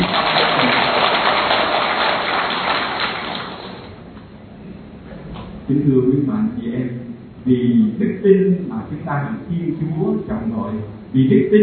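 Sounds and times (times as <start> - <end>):
audience applause: 0.0 - 3.9
speech: 5.7 - 11.6.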